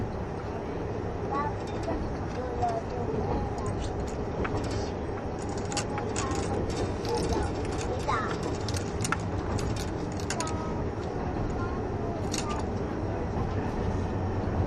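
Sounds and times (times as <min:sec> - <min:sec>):
KiHa 71 series Yufuin no Mori No. 3 train rumbling: 0:00.0 - 0:14.6
clicks and rattles: 0:01.5 - 0:11.6, 0:12.2 - 0:12.9.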